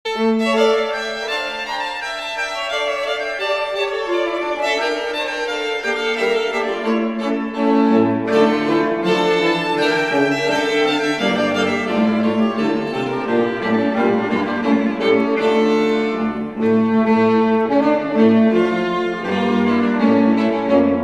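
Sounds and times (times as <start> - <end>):
trio playing a senpolska: 0.1 - 21.0.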